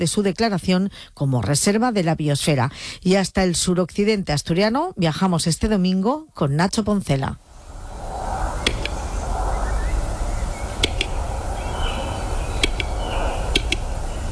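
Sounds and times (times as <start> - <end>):
speech: 0.0 - 7.5
outdoor hiss: 0.0 - 14.3
western capercaillie calling with double clicks: 7.5 - 14.3.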